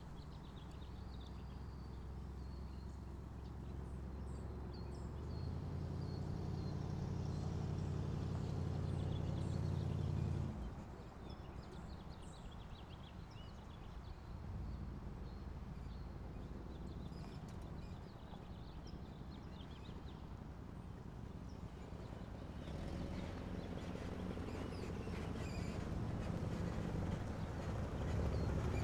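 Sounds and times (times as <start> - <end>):
1964 Mercury Montclair car driving, starting, idling and stopping: 0.0 - 28.8.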